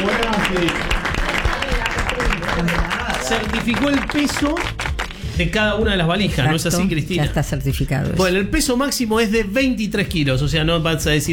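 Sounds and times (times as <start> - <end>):
audience applause: 0.0 - 5.2
speech: 0.5 - 1.0, 3.3 - 11.3.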